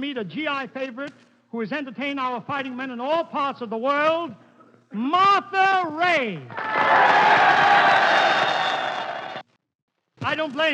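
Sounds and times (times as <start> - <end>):
speech: 0.0 - 8.4, 10.2 - 10.7
crowd cheering: 6.5 - 9.5.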